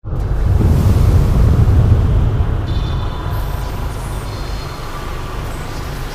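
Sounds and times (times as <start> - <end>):
rumbling: 0.0 - 6.0.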